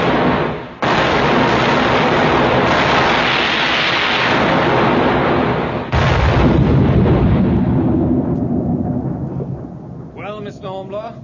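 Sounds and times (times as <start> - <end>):
cannon fire from a ship's guns: 0.0 - 11.2.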